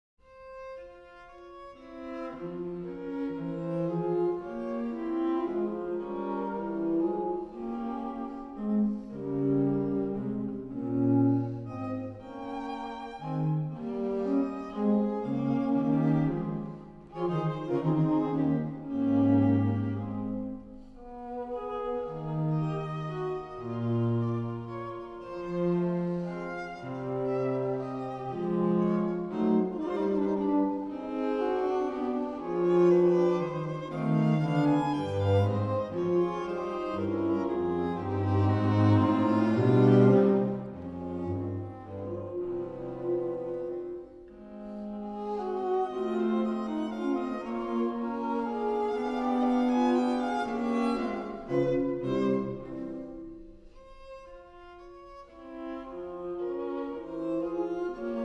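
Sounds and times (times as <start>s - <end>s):
string ensemble playing andante: 0.3s - 58.2s.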